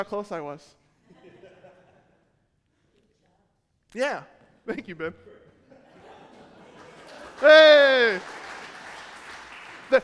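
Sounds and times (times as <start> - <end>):
speech: 0.0 - 0.8, 3.9 - 5.4, 7.4 - 8.4, 9.9 - 10.0
laughter: 1.0 - 2.4, 5.2 - 8.2
audience clapping: 6.4 - 10.0.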